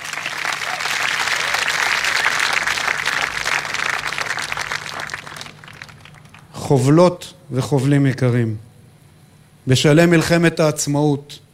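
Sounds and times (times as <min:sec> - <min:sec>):
audience applause: 0:00.0 - 0:06.5
speech: 0:06.7 - 0:08.7, 0:09.6 - 0:11.4.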